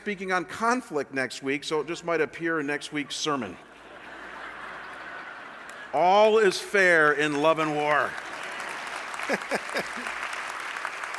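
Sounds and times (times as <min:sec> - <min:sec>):
speech: 0:00.0 - 0:03.7, 0:05.9 - 0:08.3, 0:09.3 - 0:10.2
laughter: 0:02.8 - 0:07.7, 0:08.7 - 0:10.4
audience clapping: 0:04.8 - 0:11.1.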